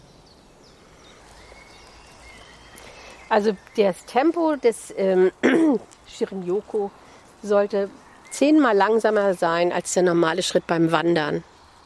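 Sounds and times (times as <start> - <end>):
faint bird chirps outdoors: 0.0 - 4.7, 7.8 - 9.1
steady hiss of outdoor ambience: 0.0 - 11.8
speech: 3.3 - 11.5.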